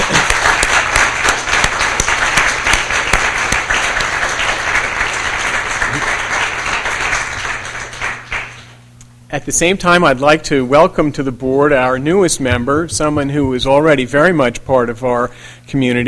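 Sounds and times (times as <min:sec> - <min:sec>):
audience applause: 0:00.0 - 0:08.8
speech: 0:09.4 - 0:16.0.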